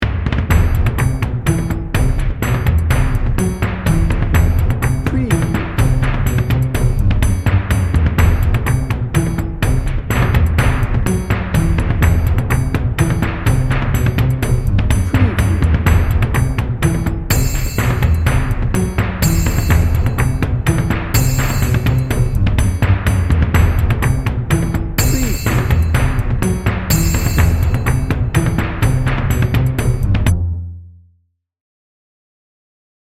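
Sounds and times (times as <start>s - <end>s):
heroic dramatic action drum and bass music: 0.0s - 30.6s.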